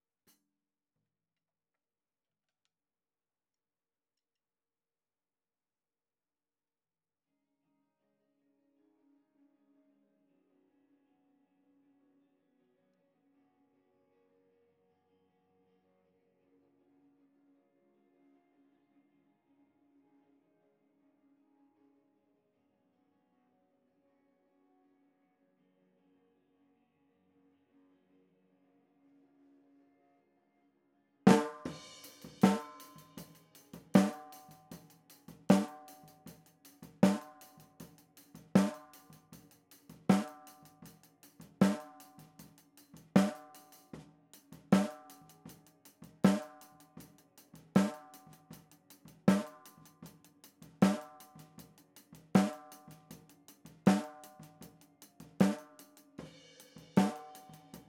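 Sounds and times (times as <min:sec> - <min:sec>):
snare drum: 0:31.3 - 0:39.3, 0:39.9 - 0:42.4, 0:43.1 - 0:45.4, 0:46.2 - 0:46.8, 0:47.8 - 0:48.5, 0:49.3 - 0:50.0, 0:50.8 - 0:51.6, 0:52.3 - 0:57.8.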